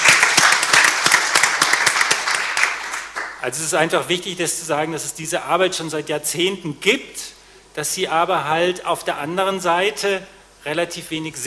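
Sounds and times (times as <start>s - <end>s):
applause: 0.0s - 3.4s
speech: 3.4s - 11.4s.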